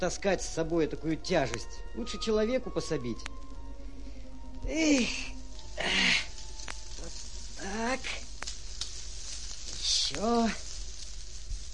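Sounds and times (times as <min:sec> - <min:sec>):
speech: 0:00.0 - 0:03.5, 0:04.6 - 0:06.2, 0:07.7 - 0:08.2, 0:10.1 - 0:10.6
fire hissing and sizzling as it is smothered: 0:00.0 - 0:11.7.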